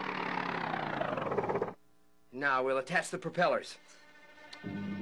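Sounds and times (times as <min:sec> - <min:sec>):
small motor running: 0:00.0 - 0:01.8
speech: 0:02.4 - 0:04.0, 0:04.6 - 0:04.9.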